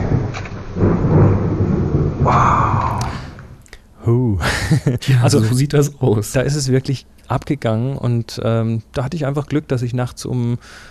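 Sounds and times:
thunder: 0.0 - 3.6
rainstorm rain: 0.0 - 3.8
speech: 4.1 - 10.8
laughter: 4.3 - 5.6.

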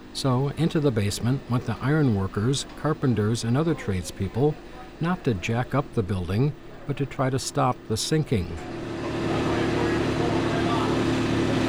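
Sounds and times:
small forklift engine humming on a dirt and gravel basement floor at a city hall: 0.0 - 11.6
speech: 0.2 - 8.8.

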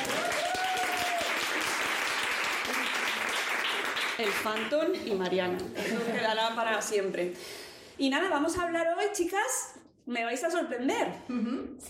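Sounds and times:
audience applause: 0.0 - 4.7
speech: 4.2 - 11.8.

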